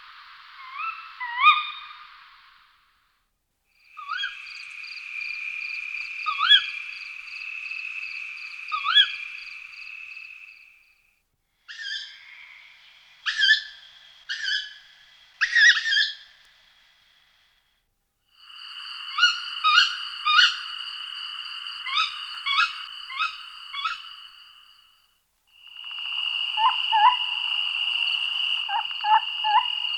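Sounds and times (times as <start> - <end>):
Tawny Owl Strix aluco hooting: 4.0 - 4.4, 8.7 - 9.2, 13.2 - 14.8, 15.4 - 16.2, 18.6 - 24.7, 25.6 - 29.9.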